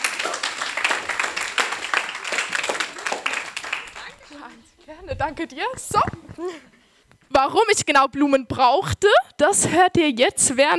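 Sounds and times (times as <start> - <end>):
applause: 0.0 - 4.4
speech: 4.9 - 6.7, 7.3 - 10.7.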